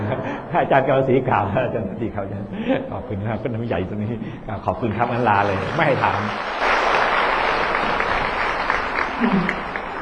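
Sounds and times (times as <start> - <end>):
laughter: 0.0 - 3.3, 9.0 - 9.9
speech: 0.1 - 6.7, 9.2 - 9.6
thunderous applause in meeting room: 5.1 - 9.9.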